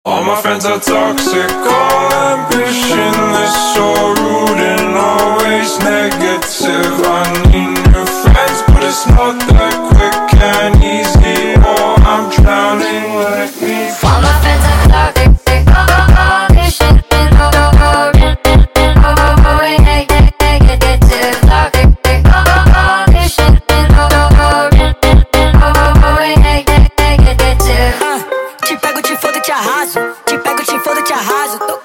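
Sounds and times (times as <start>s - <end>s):
sped up funk music: 0.7s - 31.8s.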